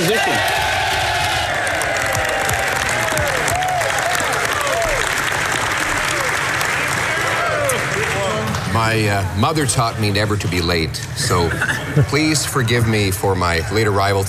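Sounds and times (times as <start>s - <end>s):
applause welcoming a politician in parliament: 0.0s - 8.7s
speech: 8.8s - 14.2s.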